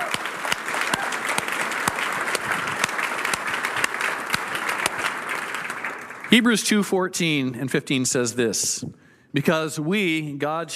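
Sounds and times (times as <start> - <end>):
audience applause: 0.0 - 6.6
speech: 6.3 - 10.7.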